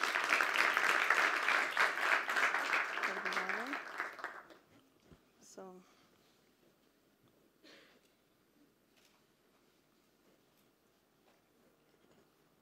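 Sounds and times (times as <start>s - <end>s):
audience applauding: 0.0s - 4.7s.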